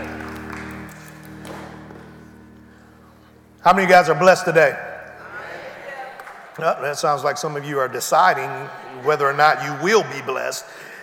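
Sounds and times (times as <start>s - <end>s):
audience hand clapping: 0.0s - 2.6s, 6.1s - 6.7s
speech: 3.6s - 4.9s, 6.6s - 10.9s.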